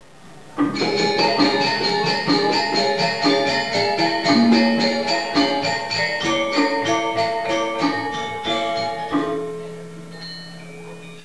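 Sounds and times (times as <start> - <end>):
rhythmic ringtone music: 0.8 - 9.5.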